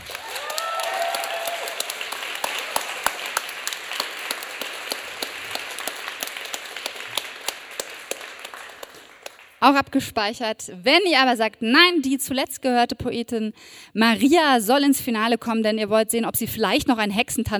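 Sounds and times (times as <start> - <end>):
poetry slam audience applauding a contestant: 0.0 - 9.6
speech: 9.6 - 17.5.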